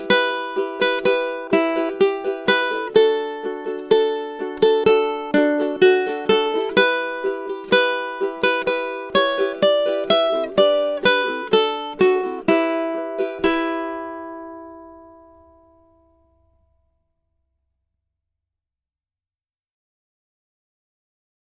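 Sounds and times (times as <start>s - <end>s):
ukulele playing a sea shanty: 0.0s - 16.9s.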